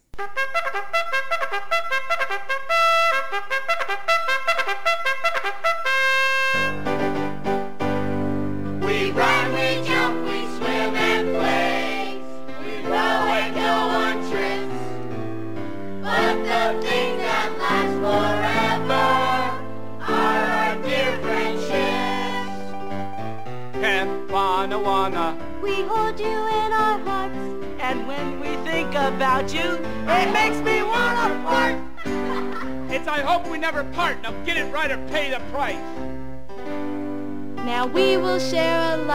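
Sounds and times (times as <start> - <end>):
upbeat instrumental backing: 0.1 - 39.1
children singing kids' sitcom theme song: 8.8 - 15.2, 16.0 - 22.8, 23.8 - 32.3, 37.8 - 39.1
laughter: 30.9 - 32.9.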